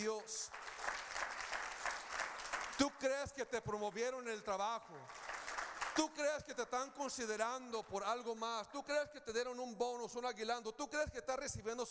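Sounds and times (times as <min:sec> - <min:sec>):
speech: 0:00.0 - 0:00.8, 0:02.8 - 0:05.2, 0:06.0 - 0:11.8
audience applauding: 0:00.0 - 0:03.1, 0:05.0 - 0:06.2.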